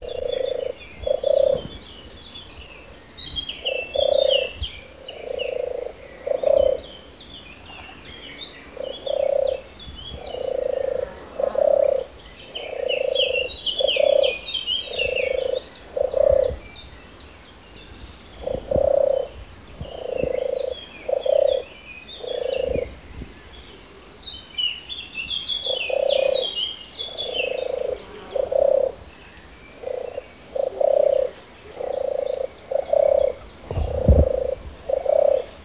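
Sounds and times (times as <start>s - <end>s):
European turtle dove purring: 0.0s - 1.8s, 3.6s - 7.0s, 8.7s - 16.6s, 18.4s - 22.9s, 25.6s - 29.0s, 29.8s - 35.6s
other birds chirping: 0.0s - 35.6s.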